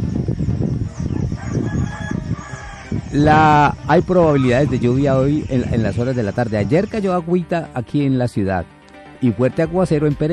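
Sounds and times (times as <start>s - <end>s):
chickens clucking in henhouse: 0.6s - 6.5s
rooster crowing in henhouse: 0.9s - 3.4s
speech: 3.2s - 10.3s.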